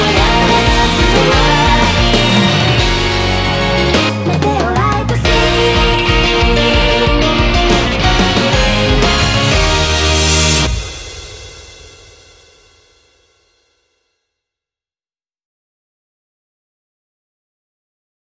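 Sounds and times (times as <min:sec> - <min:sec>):
instrumental music without vocals: 0:00.0 - 0:11.8.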